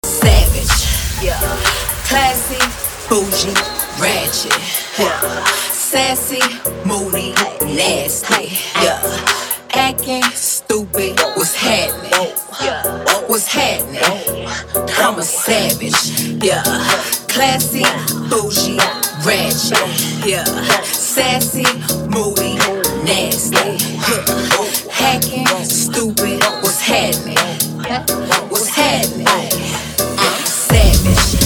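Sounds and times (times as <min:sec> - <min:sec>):
club party dance music: 0:00.0 - 0:31.4.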